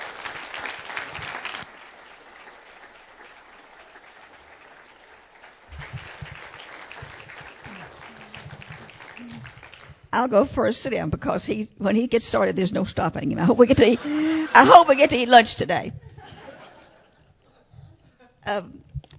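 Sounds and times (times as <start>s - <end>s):
church congregation applauding a welcomed couple: 0.0s - 10.1s
speech: 10.1s - 16.0s, 18.5s - 18.8s
laughter: 13.7s - 15.1s, 16.0s - 18.4s.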